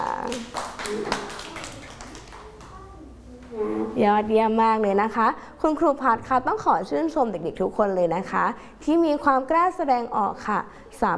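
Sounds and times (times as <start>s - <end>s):
children clapping hands: 0.0s - 2.8s
speech: 4.0s - 11.1s.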